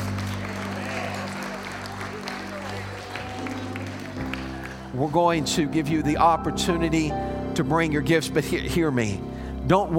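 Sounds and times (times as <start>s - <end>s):
audience hand clapping: 0.0s - 6.0s
speech: 5.0s - 9.9s.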